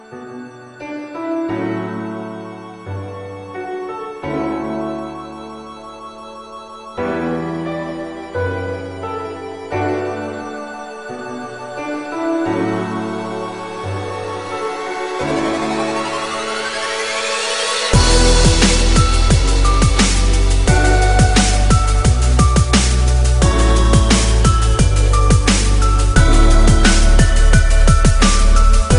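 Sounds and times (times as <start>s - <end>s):
dubstep music: 4.0s - 28.9s.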